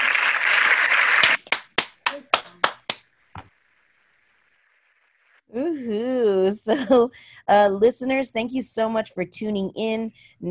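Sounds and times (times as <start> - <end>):
round of applause, clapping: 0.0 - 3.5
speech: 5.8 - 10.5.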